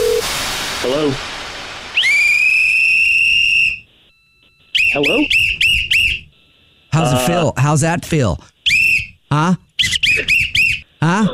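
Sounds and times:
shrill whistle blast: 0.0s - 6.4s, 8.6s - 9.2s, 9.8s - 10.9s
speech: 0.9s - 1.3s, 5.0s - 5.4s, 7.0s - 8.5s, 9.3s - 9.9s, 11.0s - 11.3s.

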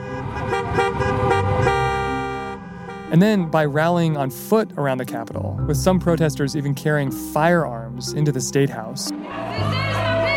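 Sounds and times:
car horns honking in a protest traffic jam in Michigan: 0.0s - 4.6s
vehicles humming: 0.0s - 10.3s
speech: 3.1s - 9.9s.

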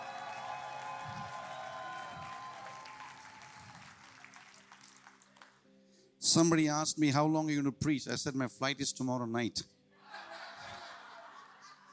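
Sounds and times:
cheers: 0.0s - 5.2s
audience applause at a lively church service: 0.0s - 5.6s
speech: 6.3s - 9.8s
laughter: 10.0s - 11.9s.

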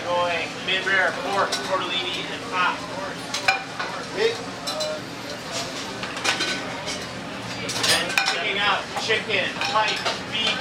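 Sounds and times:
speech: 0.7s - 3.0s, 8.8s - 10.5s
dishes and cutlery clinking in a busy restaurant kitchen: 3.3s - 10.5s.

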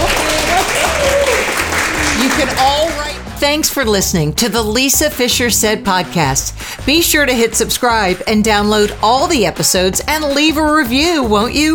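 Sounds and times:
audience applause: 0.0s - 3.2s
speech: 3.4s - 11.7s.

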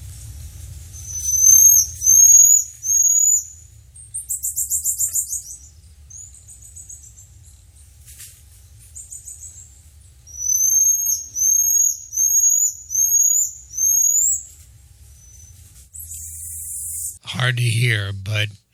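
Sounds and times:
pygmy marmoset high-pitched calls: 1.0s - 3.5s, 4.1s - 7.2s, 10.3s - 14.5s, 15.2s - 17.2s
speech: 17.5s - 18.6s.

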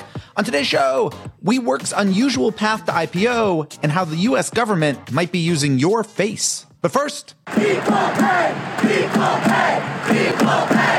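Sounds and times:
speech: 0.4s - 10.9s
large crowd cheering and chanting in Lyon, France after the U.S. women's World Cup win: 7.5s - 10.9s.

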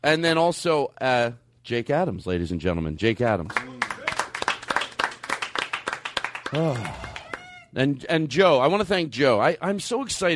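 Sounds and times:
speech: 0.0s - 3.9s, 6.5s - 7.1s, 7.7s - 10.3s
audience applause for a guest: 3.6s - 7.5s.

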